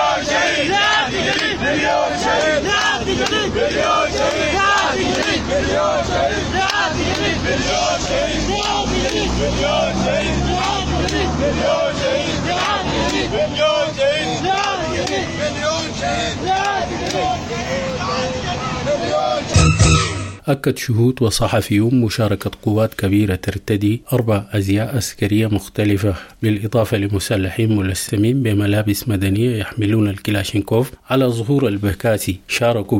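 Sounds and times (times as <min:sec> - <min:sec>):
funeral mourners chanting slogans against the security apparatus: 0:00.0 - 0:20.0
speech: 0:20.5 - 0:32.9.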